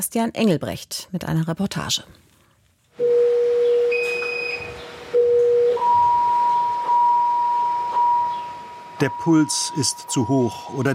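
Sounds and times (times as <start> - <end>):
speech: 0.0 - 2.2, 9.0 - 10.9
patient monitor alarm beeping in ward: 3.0 - 10.9.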